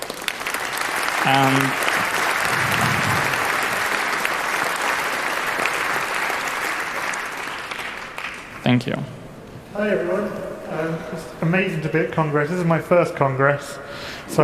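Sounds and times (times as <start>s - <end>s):
audience applause: 0.0s - 8.6s
speech: 1.2s - 1.9s, 8.7s - 9.2s, 9.8s - 14.4s.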